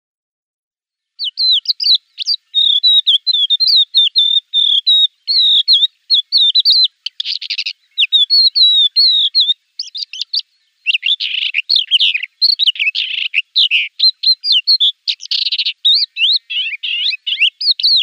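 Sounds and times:
crested lark song of whistled and twittering notes: 1.0s - 18.0s.

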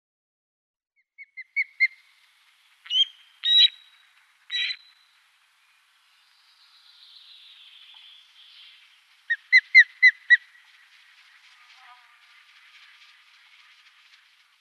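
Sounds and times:
osprey calling with whistled and squealing notes: 1.2s - 5.2s, 7.6s - 13.5s.

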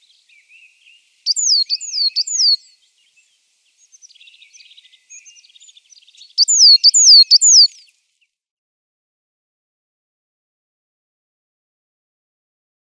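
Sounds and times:
marsh tit singing descending whistled notes: 0.0s - 8.3s.

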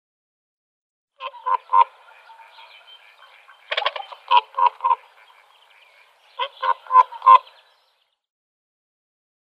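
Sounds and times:
whooper swan honking and trumpeting: 1.2s - 7.8s.

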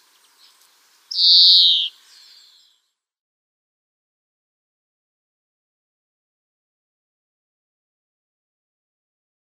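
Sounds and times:
European greenfinch song with rattling trills and whistles: 0.0s - 3.0s.

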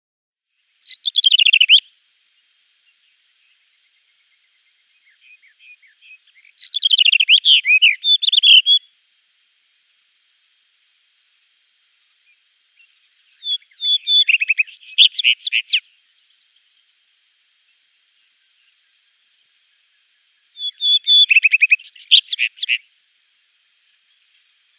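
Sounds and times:
rufous-tailed rock thrush singing: 0.8s - 1.9s, 4.3s - 8.9s, 12.3s - 16.6s, 20.6s - 22.9s.

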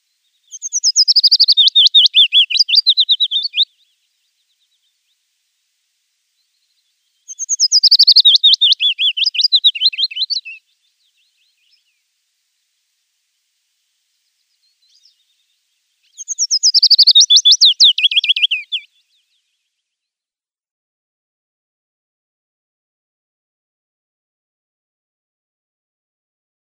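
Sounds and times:
willow warbler singing: 0.1s - 5.2s, 6.4s - 12.0s, 14.1s - 19.4s.

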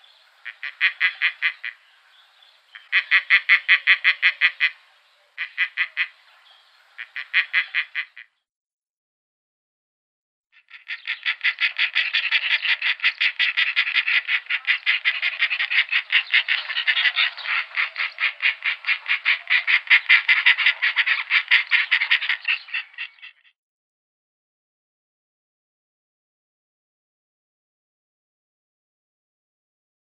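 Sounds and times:
Egyptian Vulture: 0.0s - 8.3s, 10.6s - 23.5s.

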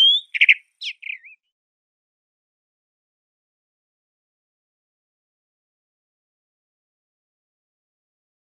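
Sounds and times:
Northern Anteater-Chat song: 0.0s - 1.6s.

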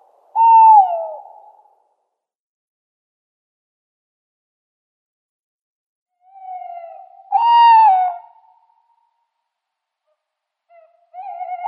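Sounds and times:
tawny owl pair quavering hoots in display: 0.0s - 1.6s, 6.3s - 8.5s, 10.7s - 11.6s.

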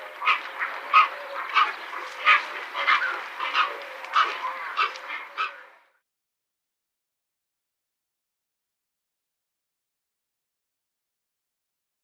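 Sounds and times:
Dalmatian Pelican: 0.0s - 5.8s.

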